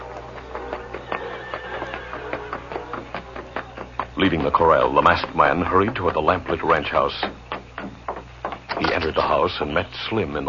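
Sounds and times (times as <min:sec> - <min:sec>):
hoofbeats of trotting horse Scout in a Western radio drama: 0:00.0 - 0:10.4
horse Scout whinnying: 0:00.8 - 0:03.1
speech: 0:04.2 - 0:07.4, 0:09.0 - 0:10.4.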